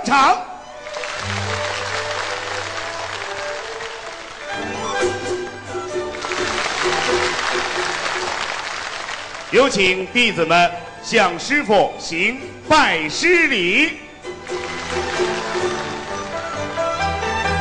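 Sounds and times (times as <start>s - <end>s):
speech: 0.1s - 0.5s, 9.5s - 14.7s
audience applause: 0.8s - 10.1s, 14.3s - 16.8s.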